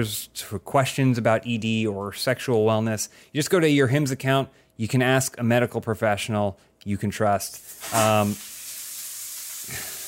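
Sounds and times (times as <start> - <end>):
speech: 0.0 - 8.5
bacon frying in a pan: 7.6 - 10.0.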